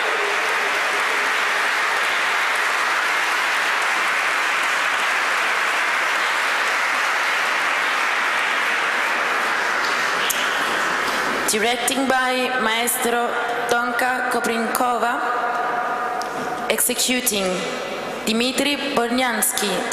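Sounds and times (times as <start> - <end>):
audience applause for a choir: 0.0 - 11.7
speech: 11.5 - 15.5, 16.7 - 19.9.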